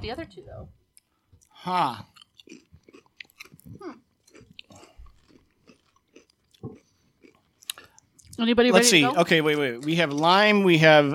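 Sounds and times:
speech: 0:00.0 - 0:00.8, 0:01.6 - 0:02.6, 0:08.4 - 0:11.1
person chewing crisp seaweed snacks: 0:01.0 - 0:08.4.

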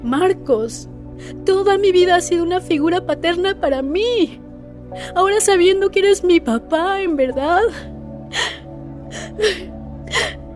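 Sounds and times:
speech: 0:00.0 - 0:10.3
woman crying in gasping sobs: 0:07.7 - 0:10.5.

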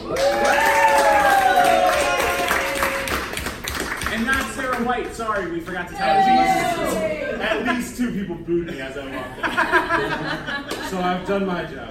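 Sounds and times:
audience whooping and cheering: 0:00.0 - 0:03.7, 0:05.9 - 0:07.7
audience applause welcoming a guest: 0:00.0 - 0:05.4
speech: 0:05.2 - 0:11.8
laughter: 0:06.2 - 0:11.8.

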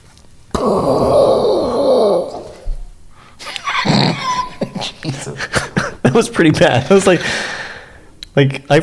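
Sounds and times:
voice imitating thunder: 0:00.6 - 0:02.7
laughter: 0:03.4 - 0:07.2
speech: 0:06.2 - 0:07.5, 0:08.4 - 0:08.8.

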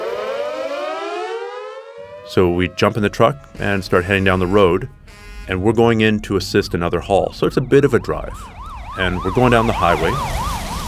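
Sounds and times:
fire station alarm siren: 0:00.0 - 0:10.8
speech: 0:02.3 - 0:10.4.

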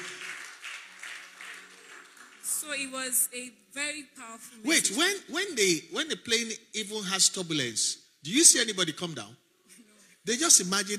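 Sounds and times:
group clapping in a steady rhythm: 0:00.0 - 0:02.9
speech: 0:02.6 - 0:09.4, 0:10.3 - 0:10.9.

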